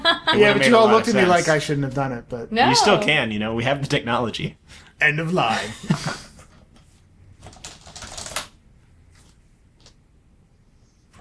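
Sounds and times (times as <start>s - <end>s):
speech: 0.1s - 6.3s
computer keyboard keystrokes typing a password: 7.4s - 8.6s.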